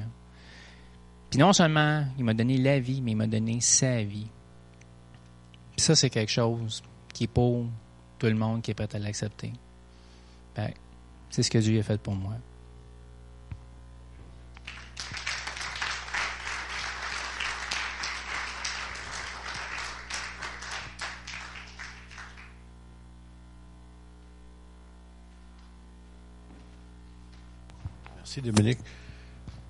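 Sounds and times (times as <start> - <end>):
speech: 1.4 - 4.4, 5.8 - 9.7, 10.6 - 12.5, 28.4 - 29.0
audience applause: 14.6 - 22.6.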